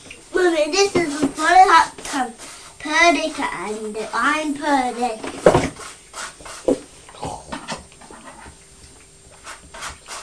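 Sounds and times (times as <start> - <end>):
speech: 0.6 - 2.3, 2.9 - 5.7
child imitating pig snorts and grunts: 7.2 - 7.6.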